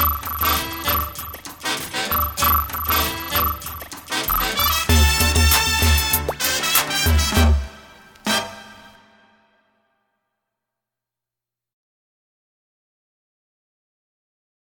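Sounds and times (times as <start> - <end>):
cyber mambo music: 0.0 - 7.8.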